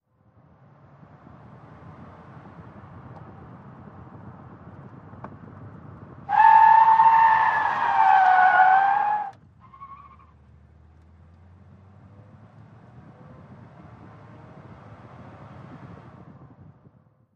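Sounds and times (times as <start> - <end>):
sedan skidding: 4.5 - 11.2.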